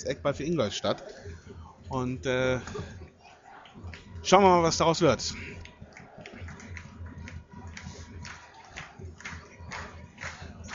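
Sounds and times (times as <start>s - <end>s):
speech: 0.0s - 3.0s, 3.8s - 5.6s
stadium crowd rhythmic clapping: 2.6s - 10.7s.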